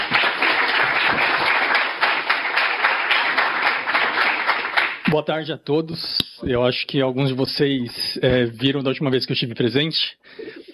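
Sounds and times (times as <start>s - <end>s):
crowd applauding: 0.0s - 5.2s
speech: 5.1s - 10.4s.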